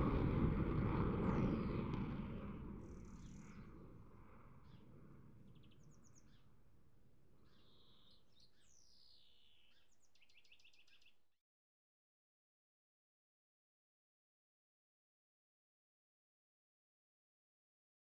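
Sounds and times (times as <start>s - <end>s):
F-16 and Tornado jets flypast with afterburners: 0.0s - 4.3s.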